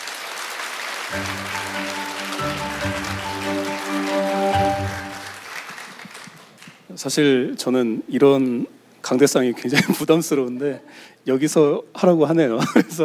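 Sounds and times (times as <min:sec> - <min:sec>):
audience applause: 0:00.0 - 0:06.9
speech: 0:01.1 - 0:02.7, 0:07.0 - 0:13.0
upbeat music with sustained tones: 0:01.1 - 0:05.6.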